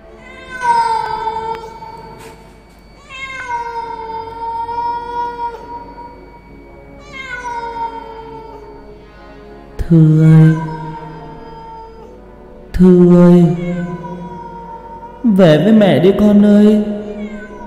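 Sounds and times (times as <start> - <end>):
black cat meowing: 0.0 - 8.8, 10.1 - 12.2, 13.0 - 15.4, 16.8 - 17.6
speech: 9.9 - 10.6, 12.8 - 13.9, 15.4 - 16.9.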